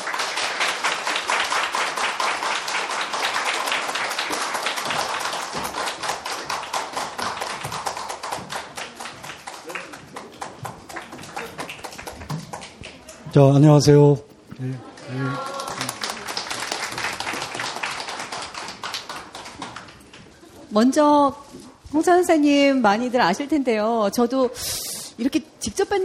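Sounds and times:
audience applause welcoming the guests: 0.0s - 13.7s, 14.7s - 20.7s
speech: 13.3s - 14.9s, 20.8s - 26.0s.

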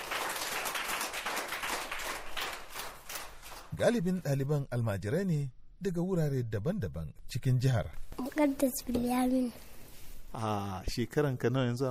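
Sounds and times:
children clapping together at a school: 0.0s - 3.8s
speech: 3.8s - 9.7s, 10.3s - 11.8s.

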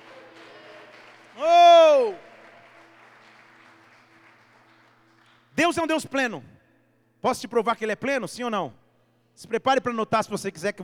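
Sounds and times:
audience applause: 0.0s - 5.5s
speech: 5.6s - 6.6s, 7.2s - 8.8s, 9.4s - 10.8s.

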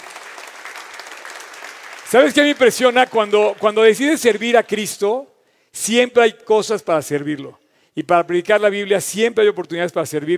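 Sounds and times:
audience applause: 0.0s - 3.9s
speech: 2.1s - 10.3s.

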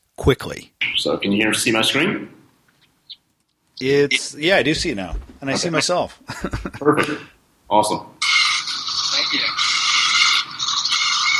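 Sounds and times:
speech: 0.2s - 2.4s, 3.8s - 8.1s
laughter: 6.3s - 7.2s
robotic cooking machine operating: 8.3s - 11.3s.

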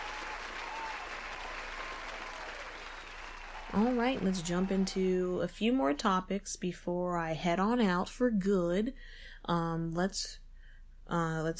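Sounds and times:
audience applause: 0.0s - 5.0s
speech: 3.7s - 10.4s, 11.1s - 11.5s.

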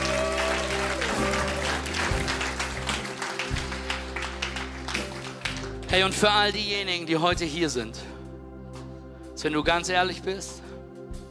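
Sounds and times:
audience applauding: 0.0s - 6.3s
speech: 5.9s - 8.1s, 9.4s - 10.6s.

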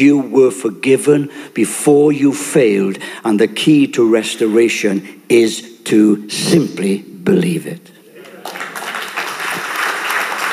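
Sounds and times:
speech: 0.0s - 8.0s
audience clapping: 8.2s - 10.5s.

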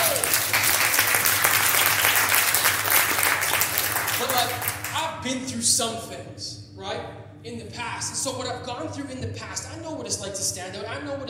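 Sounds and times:
audience clapping hands: 0.0s - 5.0s
speech: 5.2s - 11.2s.

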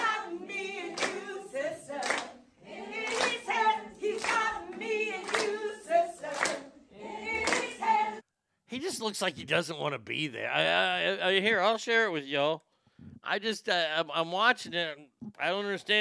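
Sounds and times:
group of people clapping: 0.0s - 8.2s
speech: 9.0s - 12.7s, 13.3s - 15.9s.

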